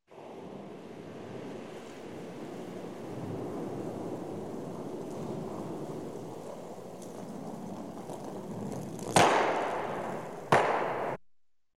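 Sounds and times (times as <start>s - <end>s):
curling stone sliding: 1.3s - 10.5s
curling stones colliding: 4.4s - 11.2s.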